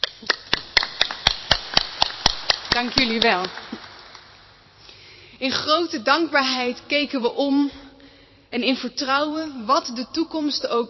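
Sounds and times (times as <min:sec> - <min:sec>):
rhythmic audience clapping after a thank-you speech: 0:00.0 - 0:04.5
speech: 0:02.8 - 0:03.8, 0:05.4 - 0:07.8, 0:08.5 - 0:10.8.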